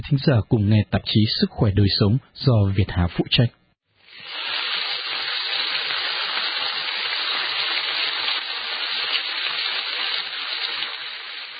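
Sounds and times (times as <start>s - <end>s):
speech: 0.0s - 3.6s
food sizzling while frying in oil-filled pans: 4.0s - 11.5s.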